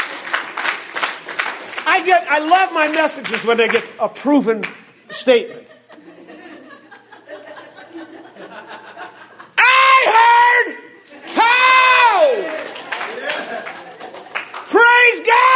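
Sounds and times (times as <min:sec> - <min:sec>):
audience applauding: 0:00.0 - 0:03.9, 0:11.2 - 0:14.9
speech: 0:02.0 - 0:05.8
laughter: 0:05.0 - 0:09.7, 0:11.0 - 0:14.4
audience shouting: 0:09.6 - 0:13.6, 0:14.7 - 0:15.5.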